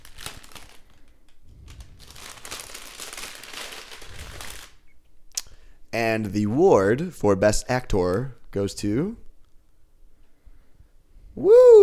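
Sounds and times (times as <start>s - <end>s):
paper envelope crinkling as it is opened at an awards ceremony: 0.0s - 5.4s
speech: 6.0s - 9.2s.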